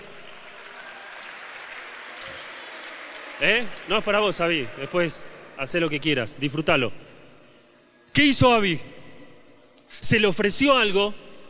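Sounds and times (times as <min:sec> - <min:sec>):
loud applause: 0:00.0 - 0:06.3
speech: 0:03.4 - 0:07.0, 0:08.2 - 0:09.0, 0:09.9 - 0:11.2.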